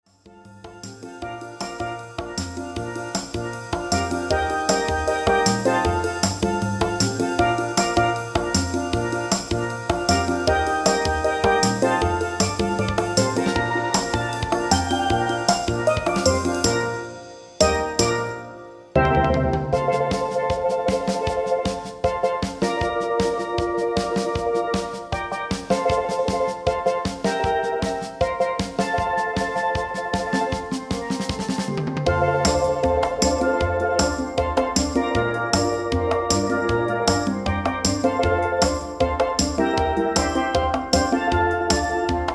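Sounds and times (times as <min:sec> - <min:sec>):
dialect song medley: 0:00.3 - 0:42.3.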